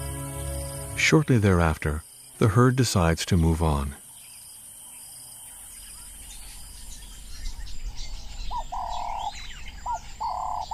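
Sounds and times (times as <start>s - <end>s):
speech: 1.0s - 4.0s
wading birds calling at a marsh: 5.6s - 10.7s.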